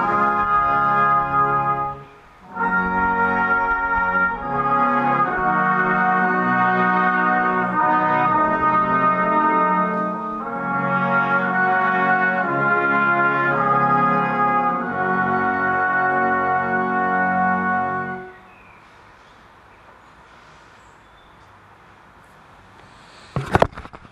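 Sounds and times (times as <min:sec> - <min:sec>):
music: 0:00.0 - 0:18.4.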